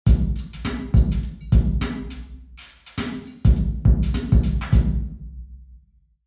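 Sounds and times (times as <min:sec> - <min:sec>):
mine drum: 0:00.1 - 0:05.2.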